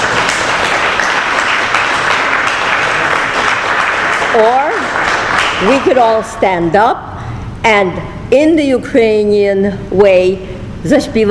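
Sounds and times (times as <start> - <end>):
audience clapping: 0.0 - 6.3
speech: 4.4 - 4.6, 5.6 - 7.0, 7.6 - 11.2.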